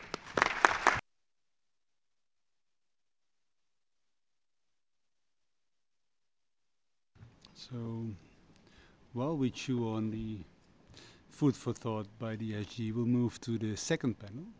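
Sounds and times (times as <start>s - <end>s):
audience applause: 0.0s - 1.0s
speech: 7.6s - 8.3s, 9.2s - 14.5s.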